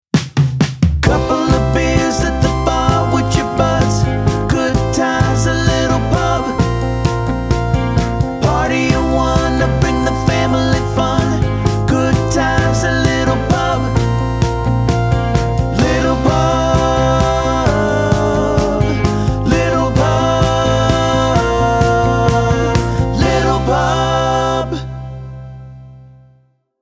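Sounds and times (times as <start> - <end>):
jingle: 1.1 - 25.8.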